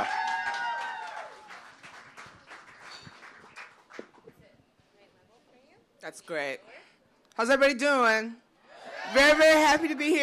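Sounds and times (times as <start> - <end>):
audience clapping: 0.0 - 4.3
speech: 6.1 - 6.8, 7.4 - 8.4, 9.1 - 10.2.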